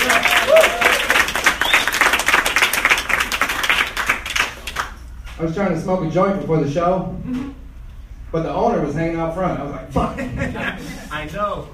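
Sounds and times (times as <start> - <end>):
audience applause: 0.0 - 4.9
speech: 5.4 - 7.6, 8.3 - 11.7
laughter: 9.9 - 11.1.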